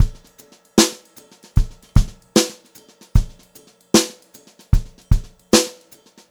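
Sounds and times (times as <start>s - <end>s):
brushed drum loops: 0.0s - 6.2s.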